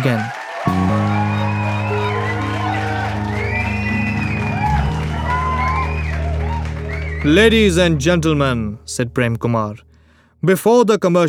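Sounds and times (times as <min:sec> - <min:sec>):
speech: 0:00.0 - 0:01.1, 0:07.2 - 0:11.2
studio audience clapping: 0:00.0 - 0:07.9
studio audience cheering and whooping: 0:00.1 - 0:07.6.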